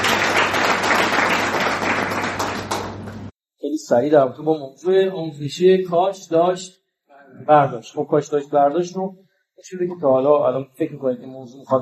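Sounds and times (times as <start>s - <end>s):
audience applause at a talk: 0.0s - 3.3s
speech: 3.9s - 11.7s.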